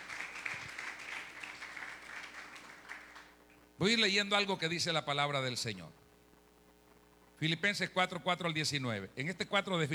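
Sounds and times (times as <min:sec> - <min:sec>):
audience applause: 0:00.0 - 0:03.4
speech: 0:03.8 - 0:06.0, 0:07.4 - 0:09.9.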